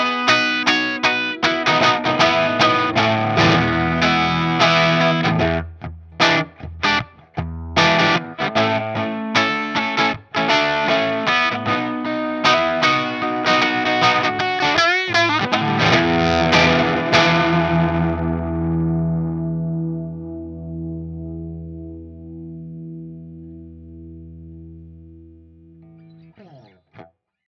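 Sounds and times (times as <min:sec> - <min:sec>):
Fat Strat guitar on bridge pickup through TRIWATT 12AT7 amp with Greenbacks: 0:00.0 - 0:27.1.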